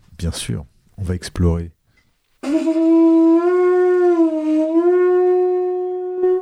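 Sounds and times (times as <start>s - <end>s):
speech: 0.2s - 1.8s
seashell blown like a horn: 2.4s - 6.4s.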